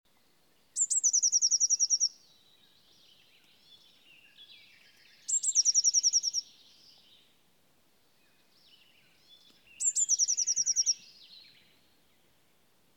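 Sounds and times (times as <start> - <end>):
soft bird twitters: 0.6 - 7.3, 8.2 - 12.2
Eurasian blue tit singing: 0.7 - 7.3, 8.7 - 11.7.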